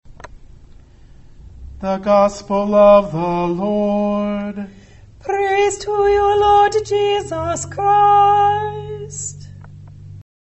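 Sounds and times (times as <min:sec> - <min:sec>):
gospel closing music: 0:01.8 - 0:09.7.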